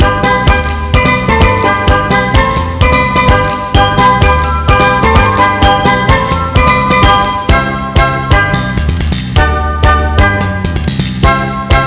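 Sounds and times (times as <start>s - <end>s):
latin music loop: 0.0s - 11.8s.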